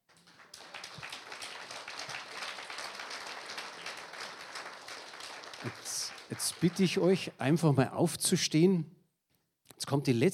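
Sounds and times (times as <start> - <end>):
applause: 0.0 - 7.6
speech: 5.6 - 9.0, 9.9 - 10.3.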